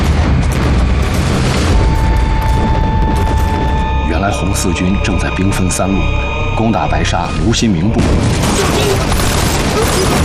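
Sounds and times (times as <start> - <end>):
heavy gunfire: 0.0 - 3.8, 8.0 - 10.2
deep booming blasts: 0.0 - 10.2
speech: 4.4 - 10.2.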